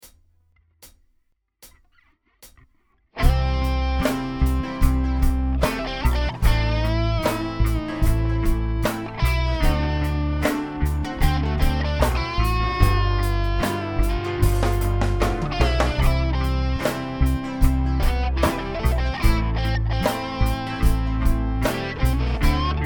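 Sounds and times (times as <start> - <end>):
nursery rhyme with lead melody: 3.2 - 22.8.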